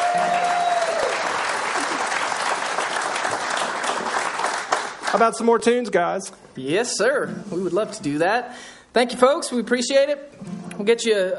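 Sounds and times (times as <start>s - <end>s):
audience applause: 0.0s - 5.4s
speech: 5.1s - 11.3s.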